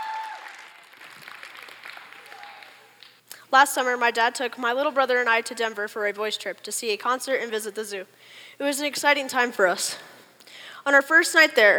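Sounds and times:
audience applause welcoming a speaker to the pulpit: 0.0 - 3.2
speech: 3.5 - 10.1, 10.8 - 11.7.

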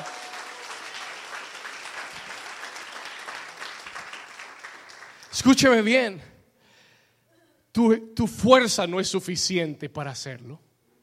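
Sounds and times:
audience applause: 0.0 - 5.4
speech: 5.4 - 6.3, 7.8 - 10.7.

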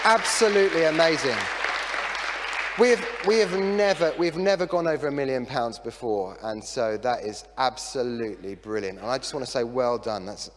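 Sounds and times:
speech: 0.0 - 1.6, 2.8 - 10.5
audience applause: 0.0 - 4.1.

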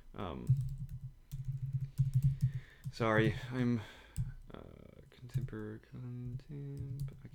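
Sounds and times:
speech: 0.2 - 1.0, 2.9 - 4.0, 5.3 - 7.3
typing on a computer keyboard while searching for a book: 0.5 - 3.4, 6.2 - 7.3.

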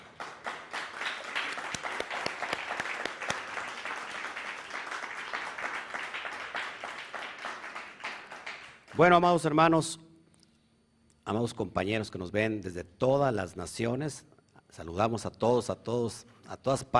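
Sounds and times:
loud audience applause: 0.0 - 9.0
speech: 9.0 - 10.0, 11.3 - 16.9.

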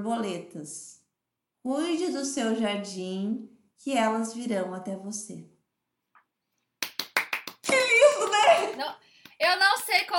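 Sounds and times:
speech: 0.0 - 1.0, 1.6 - 5.5, 8.6 - 10.1
hands clapping: 6.8 - 10.1.

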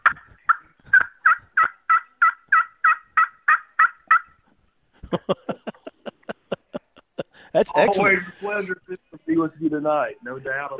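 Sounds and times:
turkey calling: 0.0 - 4.4
laughter: 5.0 - 8.7
speech: 5.1 - 5.6, 7.5 - 8.8, 9.4 - 10.7.

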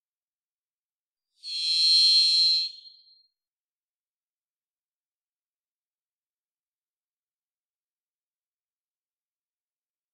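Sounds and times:
varied thrush buzzy whistle: 1.4 - 3.1.

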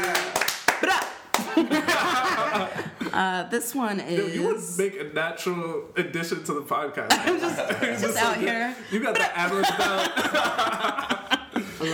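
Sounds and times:
audience clapping to welcome guest Morgan Parker: 0.0 - 1.8
laughter: 0.8 - 3.2, 7.1 - 11.9
speech: 1.6 - 11.9.

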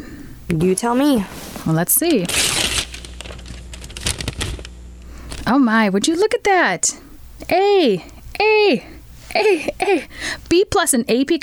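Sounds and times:
speech: 0.5 - 2.5, 5.5 - 11.4
envelope containing a report card being opened: 2.1 - 5.5.

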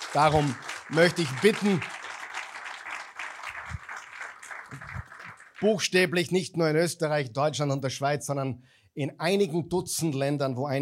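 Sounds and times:
congregation applause: 0.0 - 5.8
speech: 0.1 - 2.0, 5.6 - 10.8.

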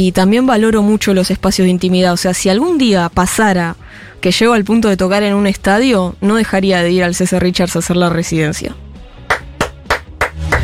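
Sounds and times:
speech: 0.0 - 8.8
applause: 9.3 - 10.6.

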